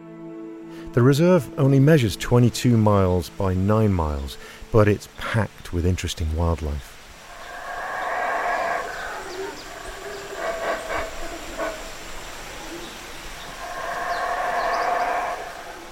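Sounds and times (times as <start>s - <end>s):
hiss: 0.0s - 15.8s
speech: 0.8s - 6.9s
howler monkeys roaring in jungle: 7.2s - 15.8s.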